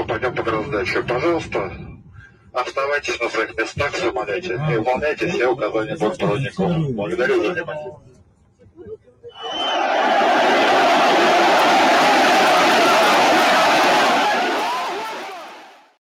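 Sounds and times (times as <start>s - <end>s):
speech: 0.2s - 1.9s, 2.6s - 8.1s
angry crowd shouting in an airport terminal: 9.4s - 15.9s.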